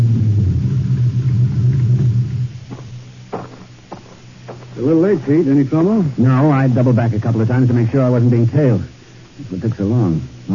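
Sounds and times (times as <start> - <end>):
car driving up: 0.0 - 4.6
speech: 4.8 - 10.5.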